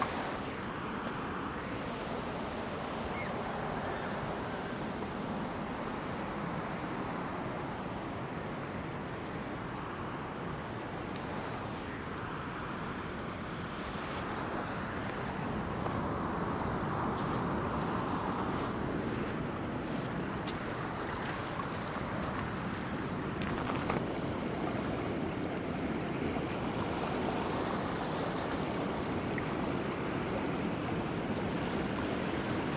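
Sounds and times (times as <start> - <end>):
Pacific surf roaring at Cape Disappointment in Washington: 0.0 - 32.7.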